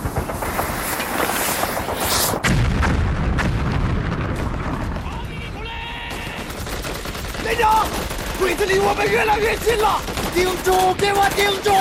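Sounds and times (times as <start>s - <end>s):
hand grenade explosion: 0.0s - 10.4s
dense battle gunfire: 2.4s - 11.7s
speech: 8.4s - 11.7s.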